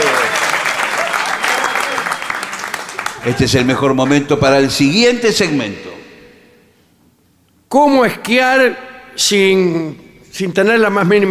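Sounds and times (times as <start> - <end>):
audience applauding: 0.0 - 4.4
speech: 3.2 - 5.9, 7.7 - 11.3.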